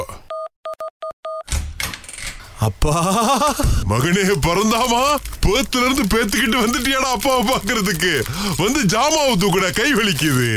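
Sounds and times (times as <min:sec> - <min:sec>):
electronic keypad door lock beeping: 0:00.3 - 0:01.5
laughter: 0:02.6 - 0:08.9
speech: 0:02.6 - 0:10.5.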